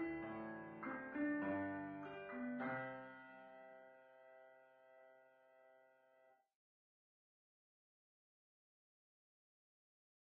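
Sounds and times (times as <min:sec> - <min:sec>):
calm music: 0:00.0 - 0:06.4.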